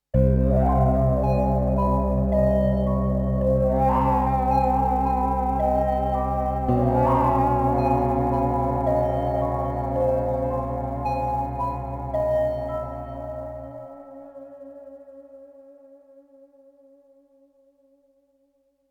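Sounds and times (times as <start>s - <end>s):
scary ambient stinger: 0.2s - 14.3s.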